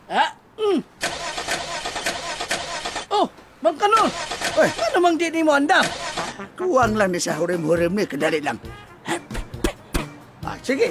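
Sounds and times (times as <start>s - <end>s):
car engine starting: 1.0s - 3.1s, 4.0s - 5.0s, 5.8s - 6.4s
speech: 4.6s - 6.0s, 6.6s - 8.8s, 10.7s - 10.8s.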